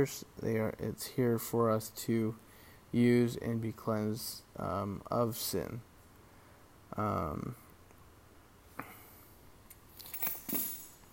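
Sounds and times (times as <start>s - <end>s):
speech: 0.0s - 5.9s, 6.9s - 7.6s
keys being dropped: 9.9s - 11.1s.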